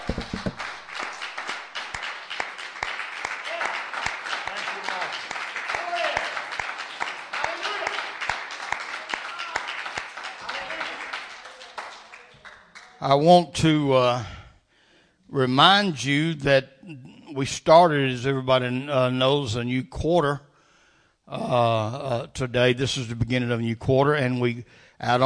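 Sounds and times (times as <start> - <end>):
audience hand clapping: 0.0 - 13.1
speech: 13.0 - 14.4, 15.3 - 20.5, 21.3 - 25.2.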